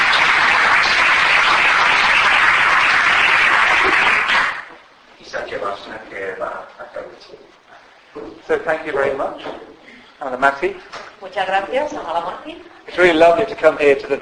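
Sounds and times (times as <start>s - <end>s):
audience applause for a speaker at the Valencia Buddhist Center: 0.0s - 4.7s
speech: 8.5s - 14.1s.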